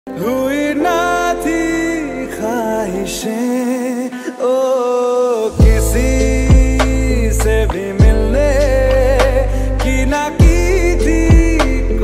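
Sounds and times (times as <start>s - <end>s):
slow lofi music with reverb: 0.1s - 12.0s.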